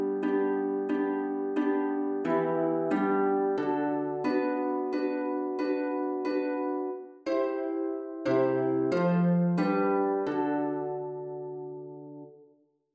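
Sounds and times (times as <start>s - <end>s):
harp: 0.0s - 12.4s.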